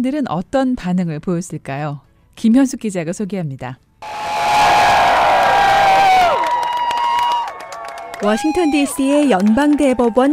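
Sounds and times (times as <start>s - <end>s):
speech: 0.0s - 4.2s, 8.2s - 10.3s
large crowd cheering outside the Supreme Court: 4.0s - 9.2s
scattered clapping: 5.3s - 10.3s.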